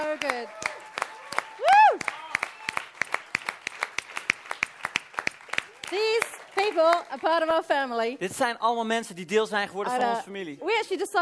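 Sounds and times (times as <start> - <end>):
speech: 0.0 - 0.6, 6.8 - 11.2
audience applause: 0.0 - 7.6.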